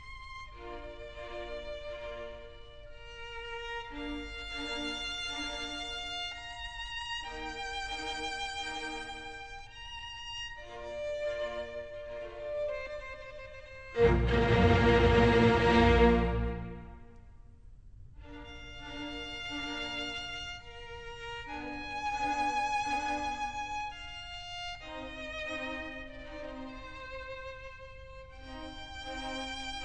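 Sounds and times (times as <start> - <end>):
classical music: 0.0 - 17.4, 18.2 - 29.8.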